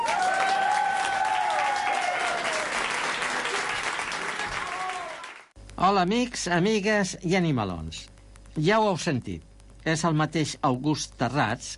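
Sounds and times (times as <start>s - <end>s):
loud audience applause: 0.0s - 5.5s
speech: 5.8s - 11.7s.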